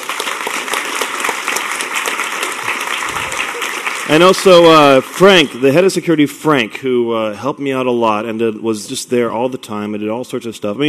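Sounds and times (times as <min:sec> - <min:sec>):
audience applause: 0:00.0 - 0:05.8
speech: 0:04.1 - 0:10.8.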